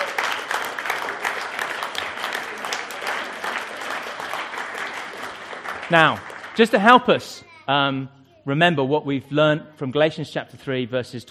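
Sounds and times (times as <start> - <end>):
audience applause: 0.0 - 7.2
speech: 5.9 - 11.2.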